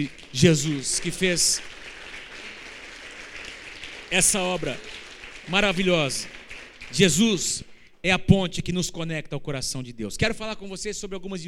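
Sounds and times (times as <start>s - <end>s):
speech: 0.0s - 1.8s, 4.1s - 11.4s
audience applauding: 0.0s - 7.6s.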